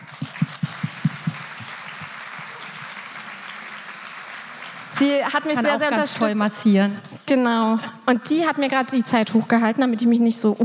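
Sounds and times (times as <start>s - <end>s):
audience applause: 0.0s - 6.1s
speech: 5.0s - 10.6s.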